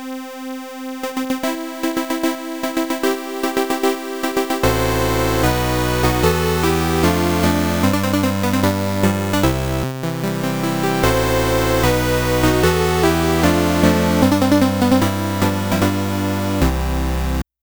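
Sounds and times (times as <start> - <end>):
completion music: 1.1 - 17.4.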